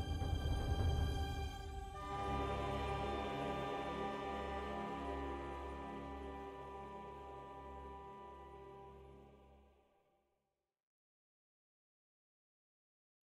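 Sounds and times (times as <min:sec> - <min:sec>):
global music: 0:00.0 - 0:09.5.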